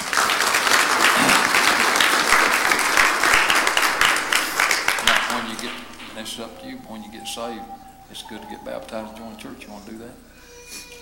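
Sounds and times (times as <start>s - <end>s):
audience applause: 0.0s - 9.0s
speech: 5.6s - 10.9s.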